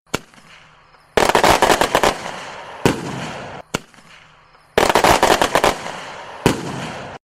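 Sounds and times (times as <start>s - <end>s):
fireworks rockets: 0.1s - 7.2s.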